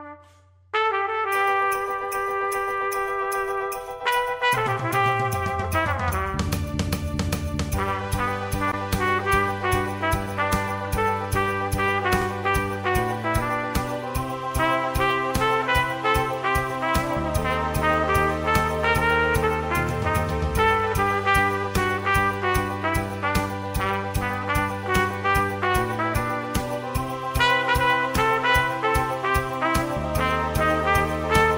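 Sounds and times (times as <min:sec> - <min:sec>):
trombita playing in Advent: 0:00.0 - 0:31.5.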